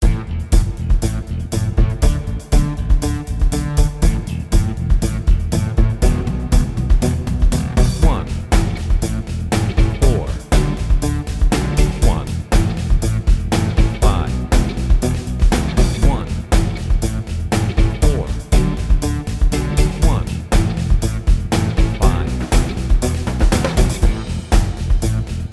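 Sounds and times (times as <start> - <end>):
I IV I V rock chord progression in A: 0.0 - 25.5.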